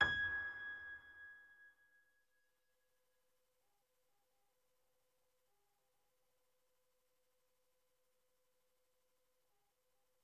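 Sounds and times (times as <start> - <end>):
low piano: 0.0 - 1.4.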